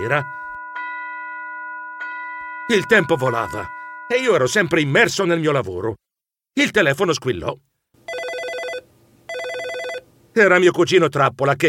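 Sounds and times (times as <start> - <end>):
speech: 0.0 - 0.4, 2.7 - 6.0, 6.6 - 7.7, 10.4 - 11.6
town square clock bell striking the hour: 0.0 - 5.1.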